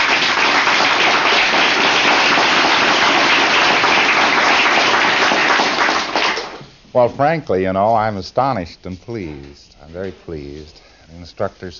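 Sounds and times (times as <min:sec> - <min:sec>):
audience applause: 0:00.0 - 0:06.6
speech: 0:06.9 - 0:11.7.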